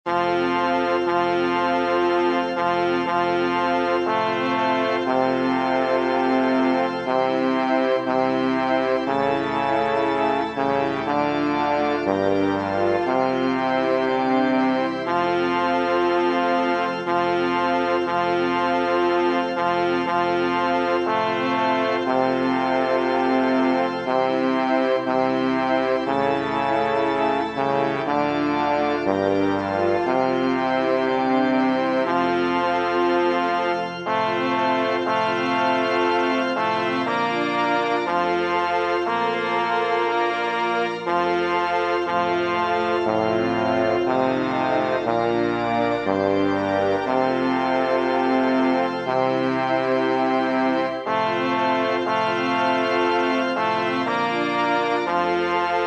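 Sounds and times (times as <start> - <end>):
organ: 0.1 - 55.8.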